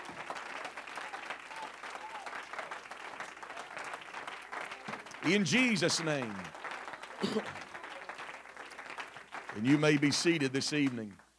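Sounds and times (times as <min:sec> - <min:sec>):
hand clapping: 0:00.0 - 0:11.2
speech: 0:05.2 - 0:06.6, 0:07.2 - 0:07.6, 0:09.6 - 0:11.2.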